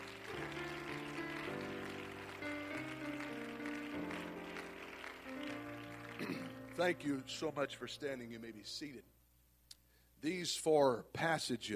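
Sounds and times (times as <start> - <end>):
church congregation clapping: 0.0 - 7.5
speech: 6.3 - 9.1, 10.2 - 11.7.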